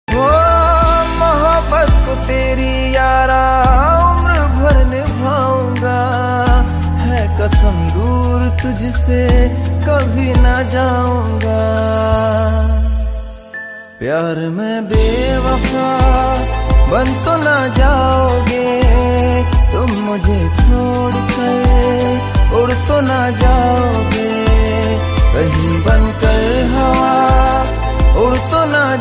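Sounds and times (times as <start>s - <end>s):
sad song ringtone: 0.1s - 28.9s.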